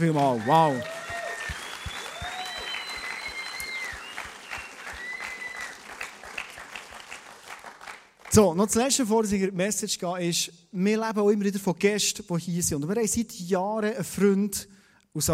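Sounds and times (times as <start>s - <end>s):
speech: 0.0s - 1.0s, 8.3s - 15.3s
church audience applause: 0.0s - 8.4s.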